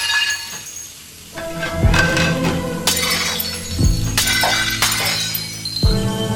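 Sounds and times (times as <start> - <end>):
shards clinking: 0.0 - 6.0
dishes being deliberately smashed: 0.0 - 6.2.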